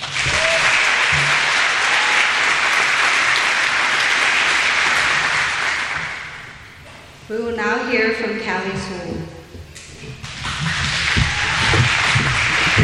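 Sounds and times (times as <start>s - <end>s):
audience applause: 0.0s - 6.7s, 10.2s - 12.8s
speech: 7.3s - 9.4s.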